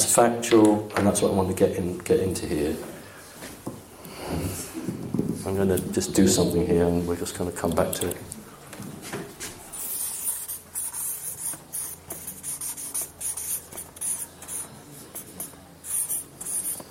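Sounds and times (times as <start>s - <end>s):
speech: 0.2s - 3.0s, 5.4s - 8.4s
pen writing the name of a tower: 9.8s - 16.8s.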